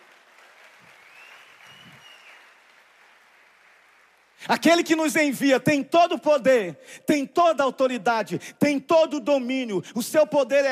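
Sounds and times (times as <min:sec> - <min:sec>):
crowd applauding: 0:00.0 - 0:04.4
speech: 0:04.4 - 0:10.7.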